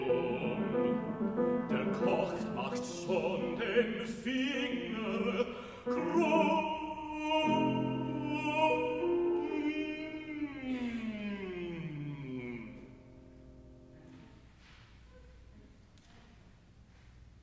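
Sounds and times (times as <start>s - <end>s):
quick tempo recital in German: 0.0s - 13.1s.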